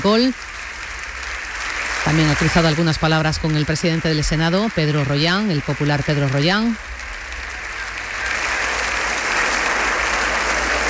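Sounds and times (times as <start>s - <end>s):
applause in parliament chamber: 0.0s - 10.8s
speech: 0.1s - 0.5s, 2.1s - 7.0s.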